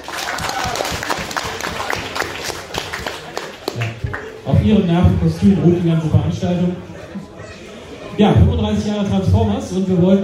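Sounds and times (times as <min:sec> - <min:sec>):
audience applause: 0:00.0 - 0:04.4
speech: 0:04.5 - 0:07.0, 0:08.2 - 0:10.2.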